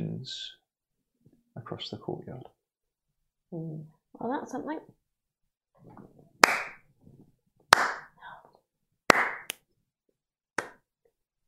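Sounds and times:
speech: 0.2s - 0.6s, 1.7s - 2.6s, 3.5s - 5.0s
slow sharp hand claps: 6.4s - 6.9s, 7.7s - 8.2s, 9.1s - 9.7s, 10.6s - 10.9s.

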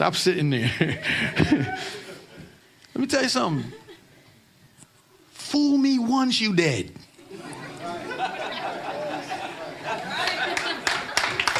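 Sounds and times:
speech: 0.0s - 2.0s, 3.0s - 3.8s, 5.5s - 7.0s
laughter: 0.6s - 2.6s, 7.2s - 11.5s
crowd chatter: 7.2s - 11.5s
audience clapping: 9.9s - 11.5s.

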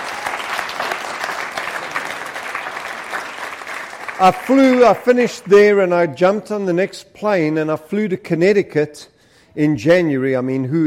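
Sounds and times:
audience applause: 0.0s - 5.4s
speech: 4.2s - 10.8s.

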